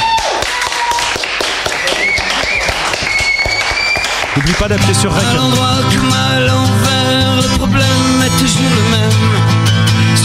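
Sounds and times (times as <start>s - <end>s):
audience applause for band: 0.0s - 6.5s
speech: 4.6s - 10.2s.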